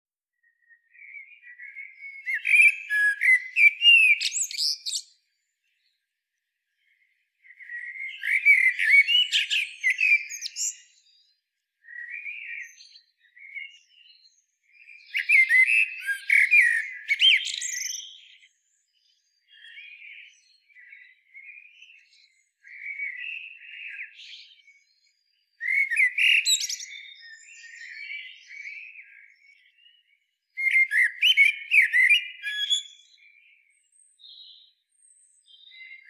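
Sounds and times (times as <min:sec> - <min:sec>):
common blackbird singing: 0:00.4 - 0:06.0, 0:06.8 - 0:36.0.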